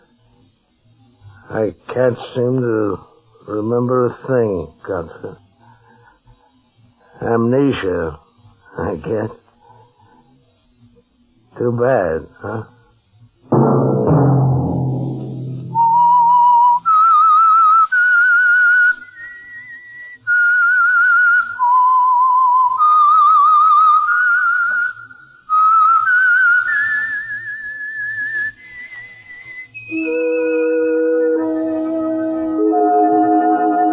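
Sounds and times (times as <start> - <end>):
speech: 1.5 - 5.4, 7.2 - 8.2, 8.8 - 9.4, 11.6 - 12.8
low thud: 13.5 - 16.8
whistled solo melody: 15.5 - 33.9.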